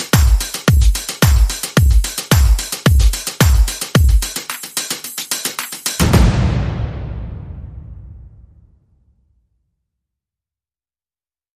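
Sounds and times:
percussion: 0.0s - 8.0s.

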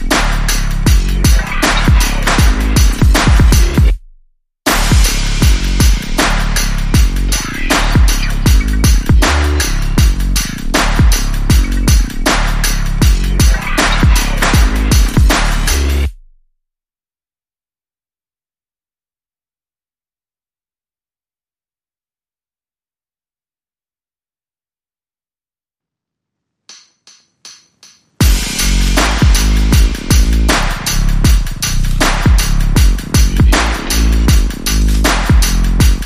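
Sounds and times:
groove: 0.0s - 4.0s, 4.7s - 16.3s, 26.7s - 36.0s
bass: 0.0s - 16.4s, 28.2s - 36.0s.

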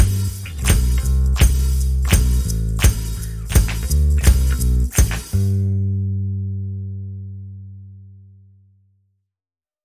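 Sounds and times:
drums: 0.0s - 5.6s
bass: 0.0s - 9.3s.

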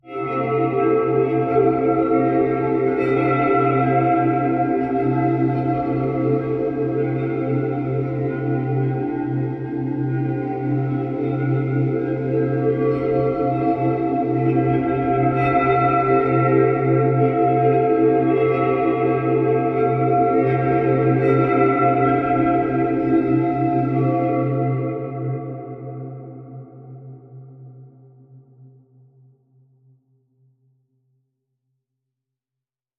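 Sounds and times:
dreamy drone: 0.1s - 28.0s.

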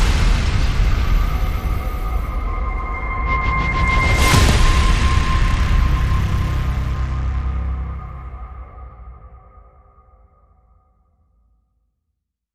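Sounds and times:
full drums: 0.0s - 8.6s.

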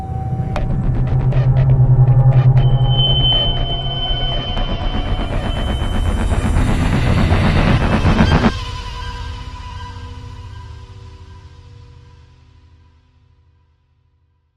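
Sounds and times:
crime music sting without percussion: 0.2s - 8.9s.

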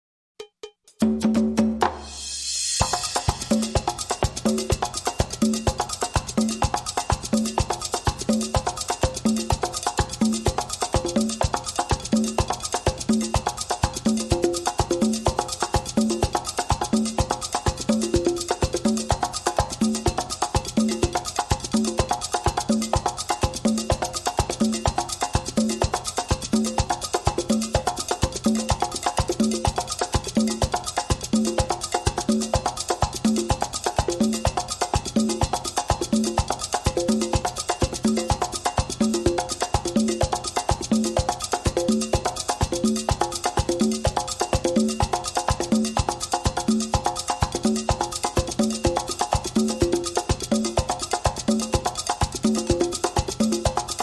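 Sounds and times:
calypso loop: 0.4s - 54.0s.

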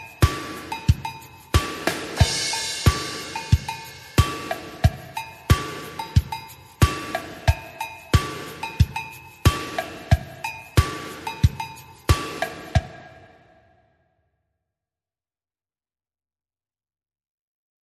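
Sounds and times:
drums: 0.0s - 13.4s
percussion: 0.0s - 13.8s.

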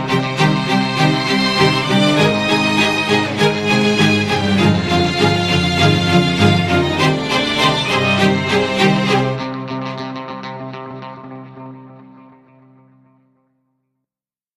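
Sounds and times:
string instruments playing: 0.0s - 10.1s.

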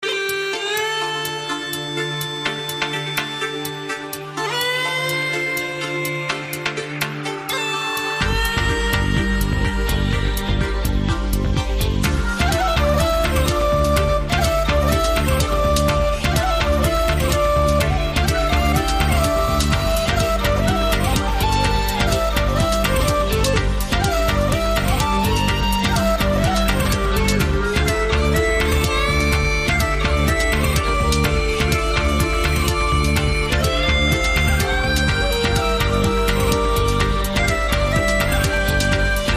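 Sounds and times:
Celtic trance music: 0.0s - 39.3s.

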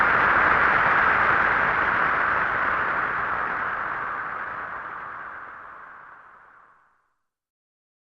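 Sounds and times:
applause: 0.0s - 5.9s.

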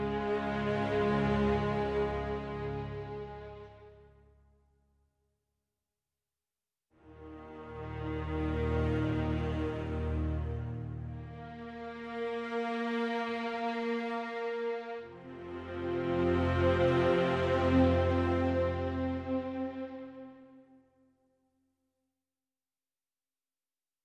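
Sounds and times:
strings: 0.0s - 4.4s, 7.0s - 20.8s.

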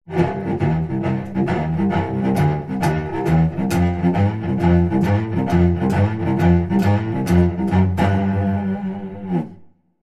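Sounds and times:
cello boogie: 0.0s - 9.8s.

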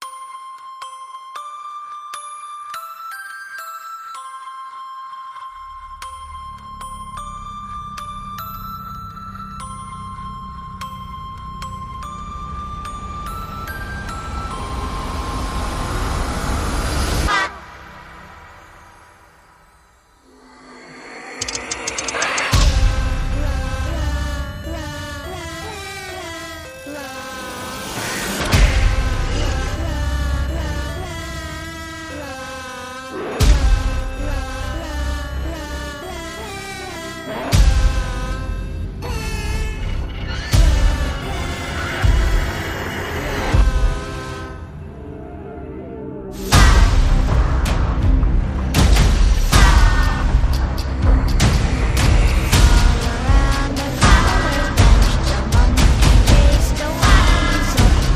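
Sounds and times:
horror nursery tune: 0.0s - 58.1s.

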